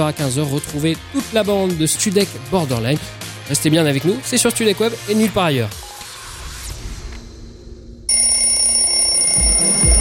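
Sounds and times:
speech: 0.0 - 5.9
alarm clock bell ringing in a radio jingle: 8.1 - 10.0.

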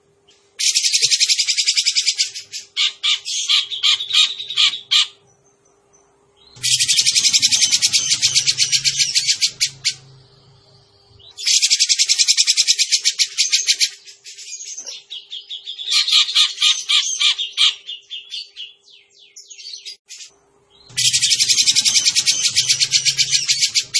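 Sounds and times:
grey-cheeked bulbul singing: 0.2 - 23.9.

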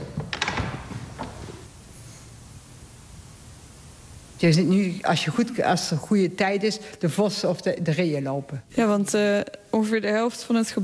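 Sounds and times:
door of a silence cabin at a monastery thumping shut: 0.0 - 1.7
speech: 4.4 - 10.8.

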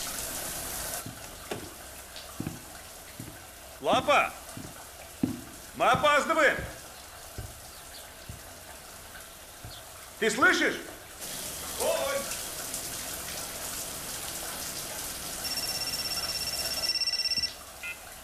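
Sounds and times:
shower spraying water: 0.0 - 18.2
speech: 3.8 - 4.4, 5.8 - 6.7, 10.2 - 10.9
person calling out: 11.8 - 12.3.

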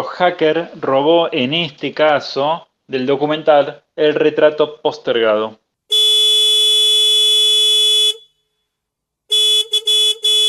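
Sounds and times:
speech: 0.1 - 5.6
car horn honking: 5.9 - 8.4, 9.3 - 10.4.

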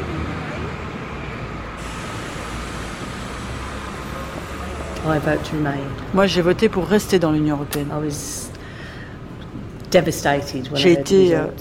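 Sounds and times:
idling bus engines at a bus station: 0.0 - 11.0
hiss: 1.8 - 5.0
speech: 5.0 - 8.5, 9.9 - 11.5.

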